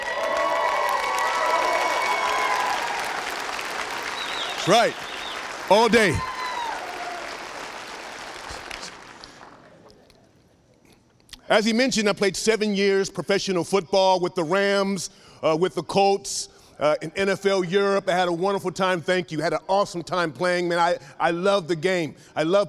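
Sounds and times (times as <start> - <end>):
audience applause: 0.0 - 10.0
speech: 4.7 - 6.3, 11.5 - 22.6.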